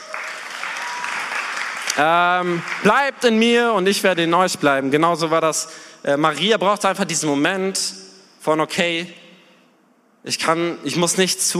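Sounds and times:
audience applause: 0.0 - 3.1
speech: 2.0 - 9.2, 10.2 - 11.5.

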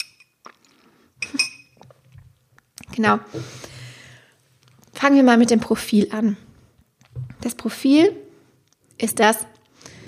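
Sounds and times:
glass clinking: 0.0 - 0.4, 1.2 - 1.8
speech: 3.0 - 3.7, 5.0 - 6.5, 7.4 - 8.2, 9.0 - 9.5.

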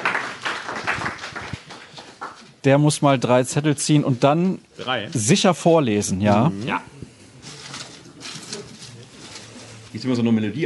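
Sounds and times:
audience applause: 0.0 - 2.4
speech: 2.6 - 7.0, 10.0 - 10.6.

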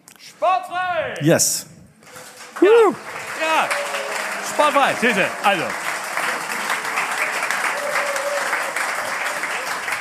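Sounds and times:
speech: 0.4 - 1.7, 2.6 - 3.9, 4.6 - 5.9
audience applause: 2.0 - 10.0.

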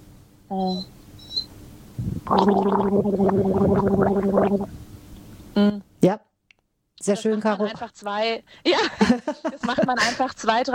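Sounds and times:
speech: 0.5 - 1.0, 2.0 - 4.8, 5.6 - 6.3, 7.0 - 10.7
loud gargling with a sip of water: 2.0 - 4.7.

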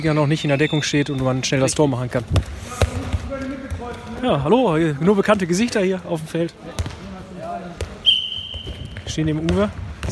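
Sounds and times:
speech: 0.0 - 2.8, 4.2 - 6.9, 9.1 - 10.1
handball bouncing on an indoor court: 2.2 - 4.3, 6.6 - 10.1
long steady high whistle-like tone: 8.0 - 9.0.

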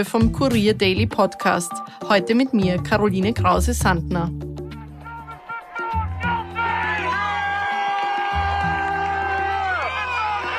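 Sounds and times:
speech: 0.0 - 4.5
crowd cheering: 4.6 - 10.5.

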